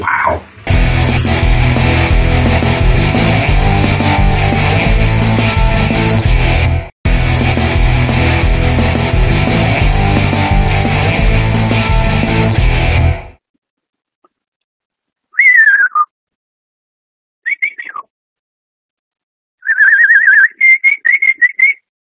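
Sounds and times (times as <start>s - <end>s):
music: 0.7s - 13.4s
person whistling in imitation of a canary: 15.4s - 16.1s, 17.4s - 18.1s, 19.6s - 21.9s.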